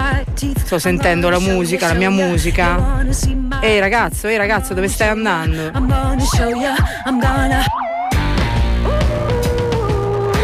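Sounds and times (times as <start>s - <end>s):
speech: 0.4s - 7.8s
sirens: 5.8s - 10.4s.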